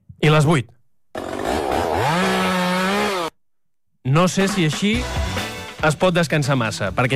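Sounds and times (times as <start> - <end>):
speech: 0.3 - 0.8, 4.1 - 7.1
chainsaw engine revving: 1.1 - 3.4.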